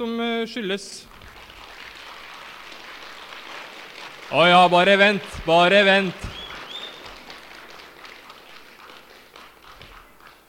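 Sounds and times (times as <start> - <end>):
speech: 0.0 - 1.2, 4.3 - 6.4
crowd clapping: 1.0 - 10.4.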